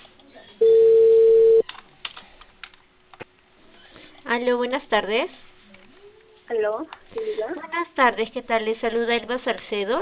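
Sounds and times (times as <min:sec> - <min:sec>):
telephone tone on a call from Cable Perú: 0:00.6 - 0:01.6
speech: 0:04.4 - 0:05.4, 0:06.5 - 0:10.0.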